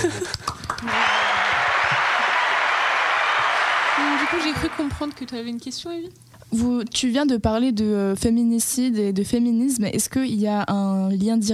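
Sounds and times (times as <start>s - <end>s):
audience applause: 0.4s - 5.5s
speech: 4.3s - 11.5s.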